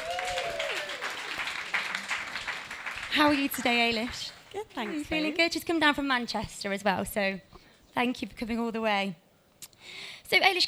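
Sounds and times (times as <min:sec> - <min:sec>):
person whooping: 0:00.0 - 0:01.1
audience applause: 0:00.0 - 0:05.1
speech: 0:03.1 - 0:09.2, 0:09.8 - 0:10.6.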